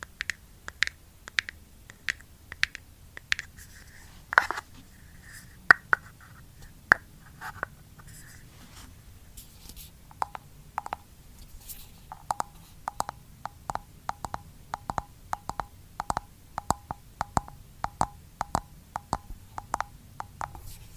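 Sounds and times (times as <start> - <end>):
faint low hum: 0.0 - 20.9
light taps on a skincare product container: 12.1 - 20.6.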